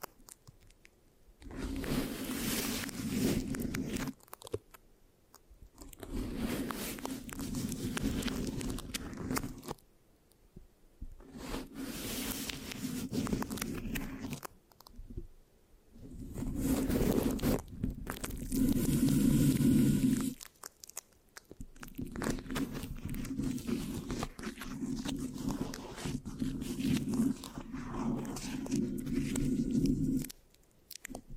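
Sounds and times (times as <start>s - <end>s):
microphone scratching with sticky rasping texture: 1.4s - 4.2s, 5.8s - 9.8s, 11.1s - 14.5s, 16.0s - 20.4s, 21.9s - 30.3s.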